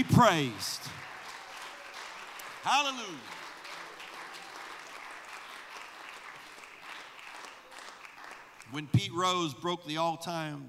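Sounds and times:
speech: 0.0 - 0.9, 2.6 - 3.4, 8.7 - 10.6
audience applause: 0.0 - 8.8.

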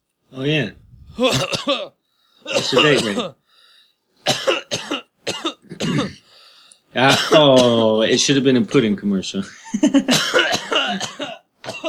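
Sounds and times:
speech: 0.3 - 3.4, 5.8 - 6.2, 6.9 - 11.8
person coughing: 1.1 - 1.9, 2.5 - 3.4, 4.3 - 6.2, 10.0 - 11.8
laughter: 9.4 - 10.2.

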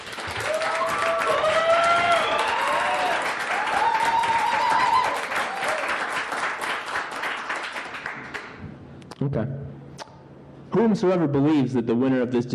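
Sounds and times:
audience applause: 0.0 - 8.6
speech: 10.8 - 12.5.

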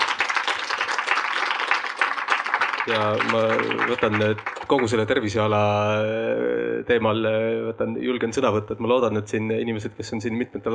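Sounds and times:
audience applause: 0.0 - 5.3
speech: 2.9 - 10.7.

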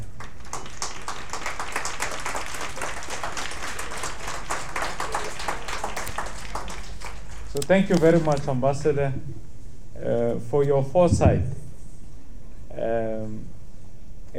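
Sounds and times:
schoolchildren giving a big round of applause: 0.0 - 8.5
speech: 7.6 - 9.4, 10.0 - 11.6, 12.8 - 13.5.

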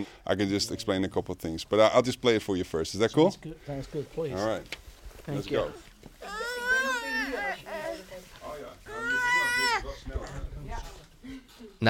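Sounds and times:
speech: 0.0 - 6.4
baby crying during a presentation: 6.2 - 8.0, 8.9 - 10.0.

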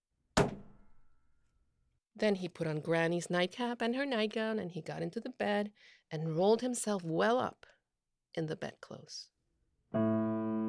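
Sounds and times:
door being shut: 0.4 - 0.8
speech: 2.2 - 9.3, 9.9 - 10.2.

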